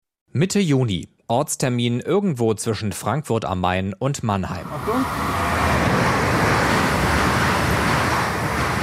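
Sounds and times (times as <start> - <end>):
speech: 0.4 - 5.5
train rushing over the Riedbahn: 4.5 - 8.8.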